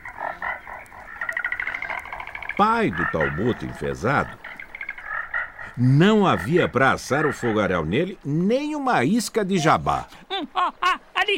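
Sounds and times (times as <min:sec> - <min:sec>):
cunauaru Amazon milk frog calling: 0:00.0 - 0:08.3
speech: 0:02.6 - 0:04.4, 0:05.8 - 0:11.3.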